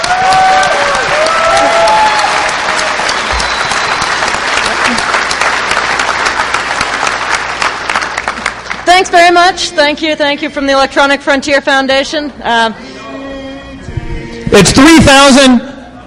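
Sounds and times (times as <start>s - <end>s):
audience applause: 0.0s - 8.8s
speech: 9.3s - 12.9s, 14.5s - 15.7s.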